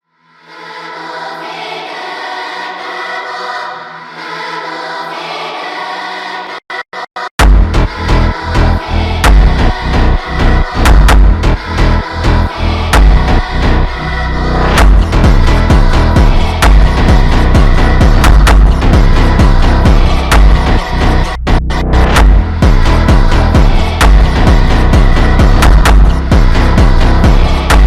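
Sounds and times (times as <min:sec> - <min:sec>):
Bulgarian funk music: 0:07.4 - 0:27.8.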